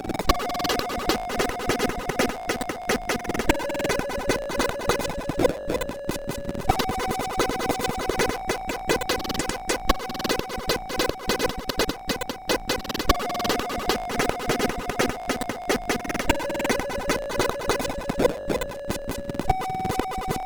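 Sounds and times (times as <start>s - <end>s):
SID chip MOS6581R4 music: 0.1s - 6.0s, 6.7s - 20.4s.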